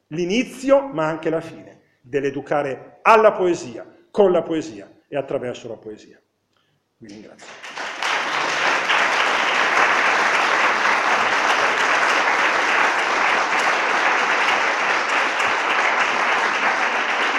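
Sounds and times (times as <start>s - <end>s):
speech: 0.1s - 6.2s, 7.0s - 7.7s
audience applause: 7.4s - 17.3s.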